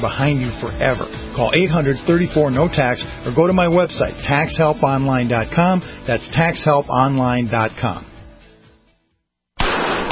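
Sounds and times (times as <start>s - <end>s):
speech: 0.0s - 8.1s
.44 Magnum gunshot hitting a Trauma Max hybrid Kevlar bulletproof vest: 9.6s - 10.1s.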